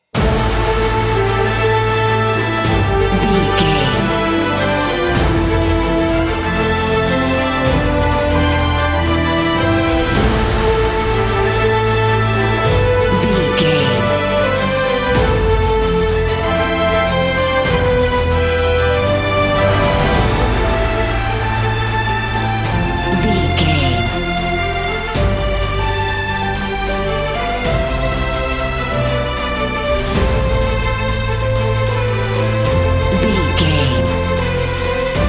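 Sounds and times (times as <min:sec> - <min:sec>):
epic cinematic music: 0:00.0 - 0:35.2.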